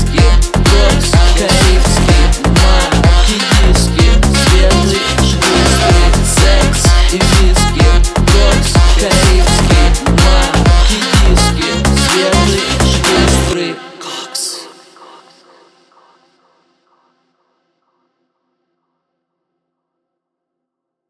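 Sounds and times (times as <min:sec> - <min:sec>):
saxophone: 0:00.0 - 0:14.9.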